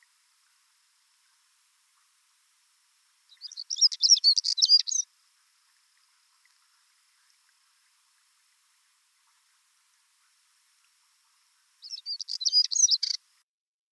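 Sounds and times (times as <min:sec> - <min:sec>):
chernogolovyy chekan stonechat calling: 0:03.3 - 0:05.1, 0:11.8 - 0:13.2.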